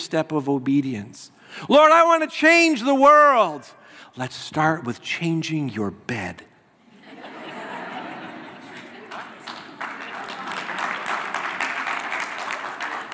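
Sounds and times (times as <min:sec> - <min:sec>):
speech: 0:00.1 - 0:06.5
laughter: 0:06.8 - 0:11.3
audience applause: 0:08.7 - 0:13.1.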